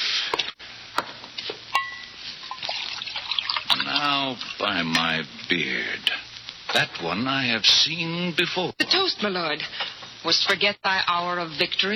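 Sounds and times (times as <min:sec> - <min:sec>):
sharp glassy clinks: 0:01.8 - 0:02.7
wine pouring into goblets: 0:02.4 - 0:04.6
speech: 0:04.2 - 0:11.9.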